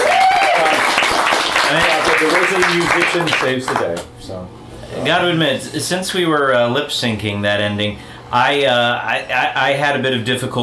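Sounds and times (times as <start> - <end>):
round of applause: 0.0 - 4.1
speech: 1.7 - 10.6.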